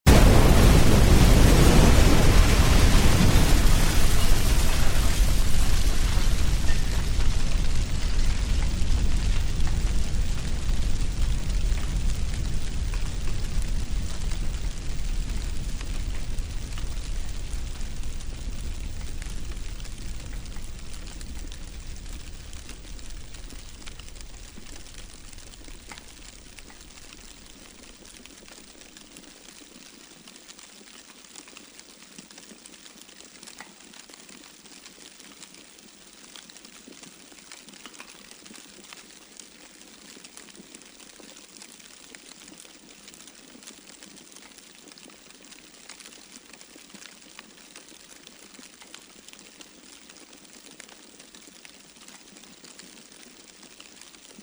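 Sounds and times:
explosion with a flash of flame: 0.1s - 27.0s
fire burning: 0.1s - 29.6s.

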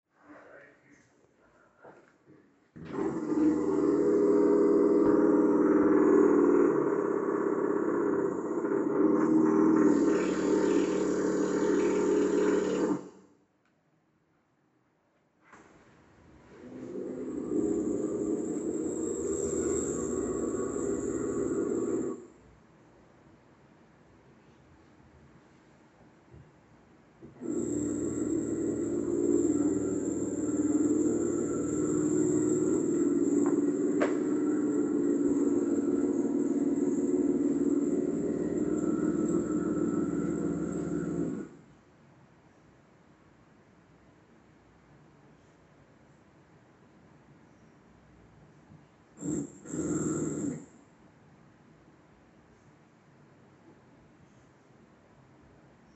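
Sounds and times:
drilling behind a wall: 2.8s - 13.3s, 16.5s - 22.5s, 27.2s - 41.7s, 49.2s - 50.8s.

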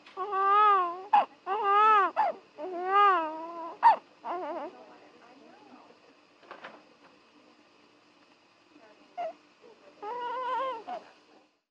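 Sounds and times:
newborn baby crying in a maternity ward delivery room: 0.2s - 4.7s, 10.0s - 11.0s.

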